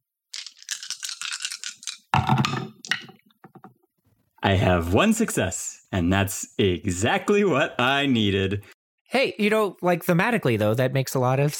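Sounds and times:
dice rattling in a cupped hand and clattering out: 0:00.3 - 0:03.0
speech: 0:04.4 - 0:11.5.

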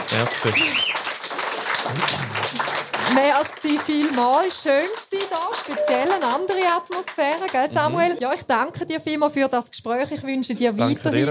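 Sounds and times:
live audience applause: 0:00.0 - 0:08.2
speech: 0:00.1 - 0:01.1, 0:01.8 - 0:11.2.

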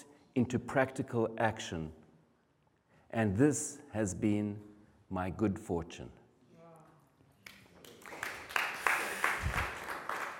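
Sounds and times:
speech: 0:00.4 - 0:02.0, 0:03.1 - 0:06.2
audience applause: 0:07.8 - 0:10.3.

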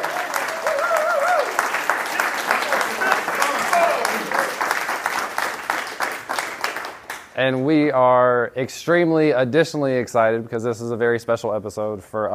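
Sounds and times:
live audience applause and cheering: 0:00.0 - 0:07.2
speech: 0:07.4 - 0:12.3.

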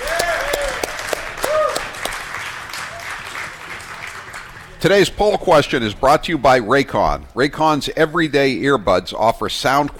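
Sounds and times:
short rising whistles and cheers: 0:00.0 - 0:02.0, 0:02.8 - 0:03.4
audience applause: 0:00.0 - 0:04.8
speech: 0:04.8 - 0:09.9.

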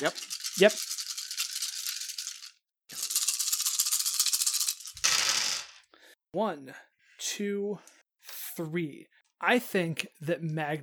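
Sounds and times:
speech: 0:00.0 - 0:01.0, 0:06.3 - 0:08.0, 0:08.6 - 0:10.8
dice rattling: 0:00.0 - 0:05.8.

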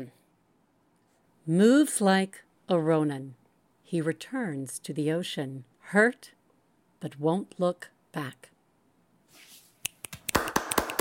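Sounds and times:
speech: 0:01.5 - 0:06.4, 0:07.0 - 0:08.5
finger snapping: 0:09.8 - 0:10.9
hands clapping: 0:09.9 - 0:10.9.

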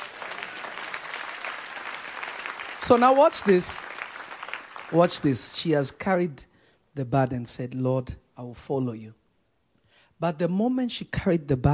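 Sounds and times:
audience applauding: 0:00.0 - 0:05.6
speech: 0:02.8 - 0:03.9, 0:04.9 - 0:09.2, 0:10.2 - 0:11.7.

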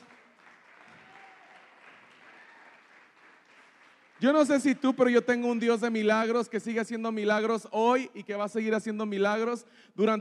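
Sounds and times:
applause: 0:00.0 - 0:05.5
speech: 0:04.2 - 0:10.1.

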